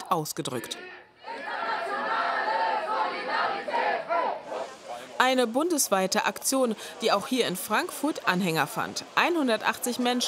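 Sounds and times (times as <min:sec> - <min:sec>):
speech: 0:00.1 - 0:01.4, 0:05.3 - 0:10.2
protesting students chanting at a school strike: 0:00.6 - 0:05.2.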